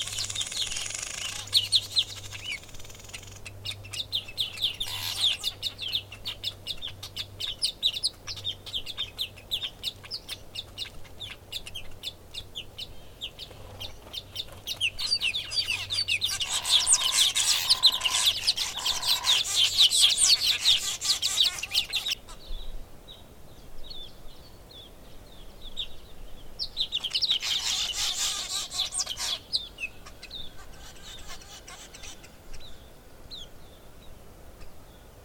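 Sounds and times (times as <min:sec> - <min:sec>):
weaver birds calling: 0:00.0 - 0:35.1
Egyptian geese calling: 0:03.8 - 0:07.2, 0:15.4 - 0:22.3, 0:27.0 - 0:32.4.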